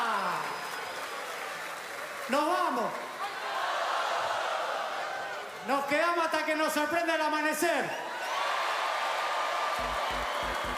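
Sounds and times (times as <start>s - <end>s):
audience applause: 0.0s - 5.6s, 8.2s - 10.7s
speech: 2.3s - 3.1s, 5.7s - 8.1s.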